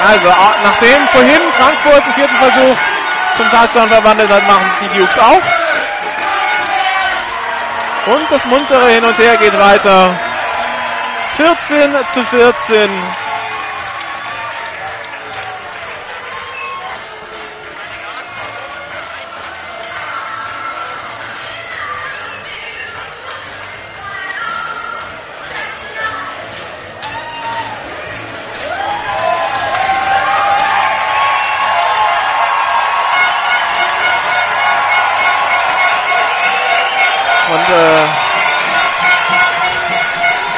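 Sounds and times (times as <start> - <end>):
stadium spectators cheering: 0.0 - 23.1, 26.9 - 40.5
speech: 0.1 - 5.6, 8.0 - 10.3, 11.3 - 13.3.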